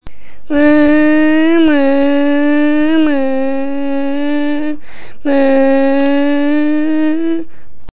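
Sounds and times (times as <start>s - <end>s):
person imitating a Ferrari engine by blowing air through a barely open mouth: 0.0s - 7.5s.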